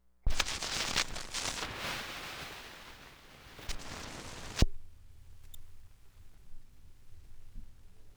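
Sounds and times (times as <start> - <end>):
record needle drop: 0.3 - 4.7.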